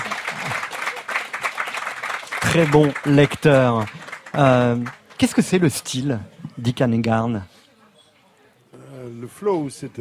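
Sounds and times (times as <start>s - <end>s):
audience applause: 0.0s - 5.8s
speech: 2.5s - 7.5s, 9.3s - 9.9s.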